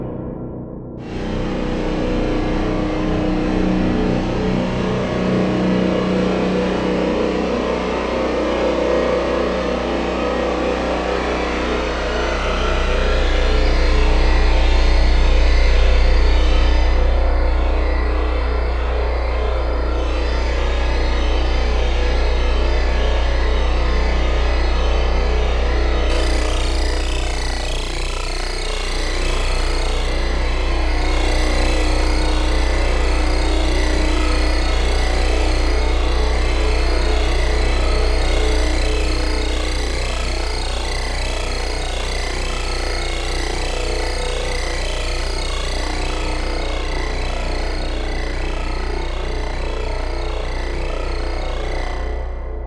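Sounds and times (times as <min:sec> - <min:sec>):
hardcore drone: 0:00.1 - 0:52.6.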